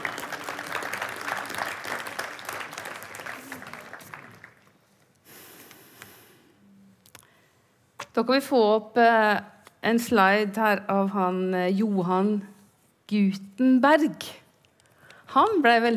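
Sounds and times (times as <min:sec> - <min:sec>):
audience applause: 0:00.0 - 0:04.8
speech: 0:08.2 - 0:12.5, 0:13.1 - 0:14.4, 0:15.3 - 0:15.9.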